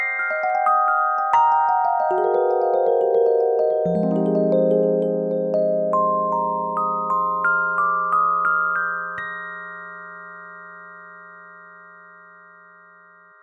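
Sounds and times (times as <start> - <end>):
Rhodes electric piano synthesizer: 0.1 - 9.3.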